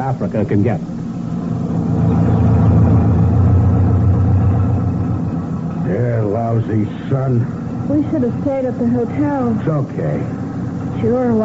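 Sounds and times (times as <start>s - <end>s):
speech: 0.1s - 1.0s, 5.9s - 10.4s, 11.0s - 11.4s
Jeep type motor lorry: 1.0s - 11.4s.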